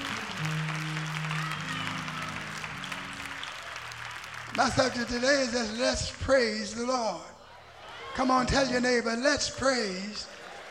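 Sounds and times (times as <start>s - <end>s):
audience clapping hands: 0.0s - 6.8s, 9.6s - 10.6s
speech: 4.6s - 7.3s, 8.2s - 10.4s.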